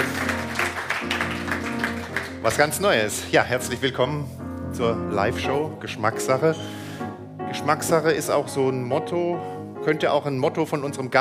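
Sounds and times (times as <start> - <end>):
audience applause: 0.0 - 2.7
speech: 2.4 - 6.8, 7.6 - 11.1.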